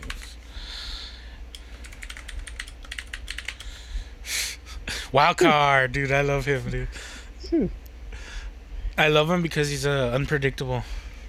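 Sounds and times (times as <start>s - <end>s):
typing a note on a computer keyboard: 0.0s - 0.3s, 1.5s - 3.7s
speech: 5.1s - 7.8s, 9.0s - 11.0s.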